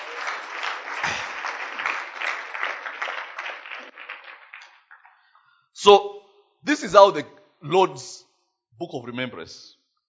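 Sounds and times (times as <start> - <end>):
audience clapping: 0.0 - 5.6
speech: 5.8 - 9.8.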